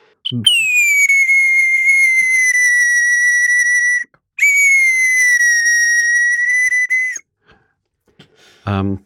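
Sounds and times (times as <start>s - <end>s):
whistled imitation of a nightingale song: 0.2s - 7.2s.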